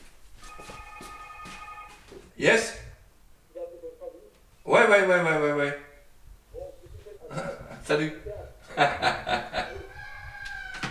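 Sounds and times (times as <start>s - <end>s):
telephone ringing: 0.4s - 2.1s
speech: 2.4s - 2.8s, 4.7s - 5.8s, 7.9s - 9.4s
laughter: 8.6s - 9.9s.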